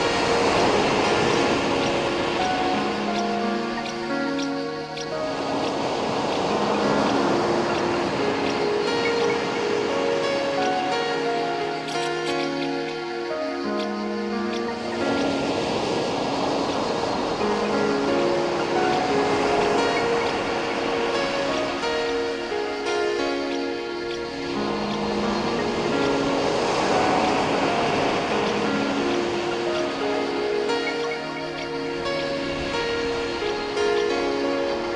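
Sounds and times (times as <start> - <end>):
waves washing in and out: 0.0 - 34.9.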